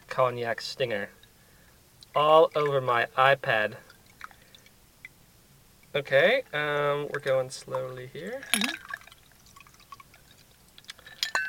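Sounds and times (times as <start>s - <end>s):
speech: 0.2s - 1.2s, 2.1s - 3.9s, 6.0s - 8.9s
cocktail strained into a glass: 1.0s - 11.4s
glass clinks: 8.4s - 8.9s, 11.0s - 11.4s.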